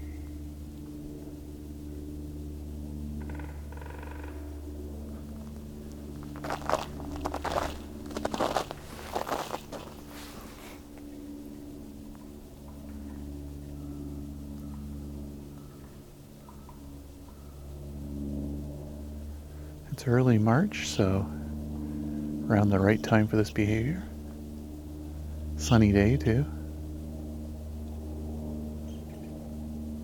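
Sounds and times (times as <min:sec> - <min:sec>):
steady low rumble: 0:00.0 - 0:30.0
hairy woodpeckers drumming on a trunk: 0:03.2 - 0:10.2
speech: 0:20.0 - 0:21.4, 0:22.5 - 0:24.1, 0:25.6 - 0:26.6.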